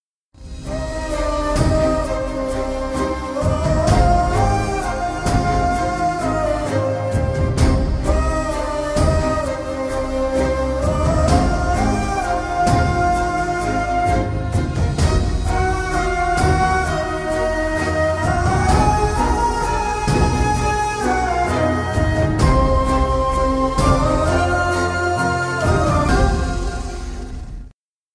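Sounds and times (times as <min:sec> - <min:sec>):
emotional background music: 0:00.4 - 0:27.7.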